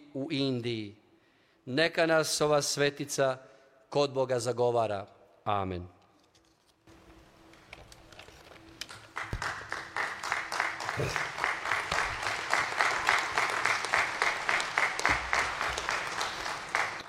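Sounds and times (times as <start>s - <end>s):
speech: 0.2s - 1.0s, 1.6s - 6.0s, 11.0s - 11.3s
audience applause at a religious talk honouring Saint Mother Teresa: 8.9s - 17.0s.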